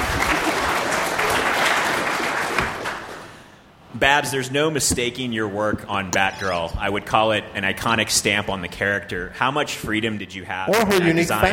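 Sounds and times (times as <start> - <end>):
audience applause: 0.0 - 3.5
speech: 4.0 - 11.5.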